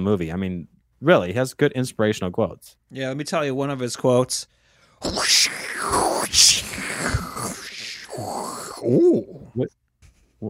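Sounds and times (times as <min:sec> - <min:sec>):
speech: 0:00.0 - 0:07.6, 0:08.2 - 0:09.8
voice imitating rasping breathing through a mask apparatus: 0:04.6 - 0:08.9
low grunting vocal bursts: 0:05.0 - 0:09.5.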